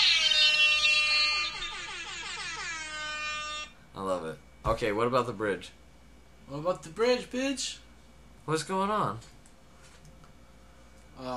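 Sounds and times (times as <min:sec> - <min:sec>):
air horn sound effect: 0:00.0 - 0:03.8
speech: 0:04.0 - 0:05.8, 0:06.5 - 0:07.9, 0:08.5 - 0:09.3, 0:11.2 - 0:11.3.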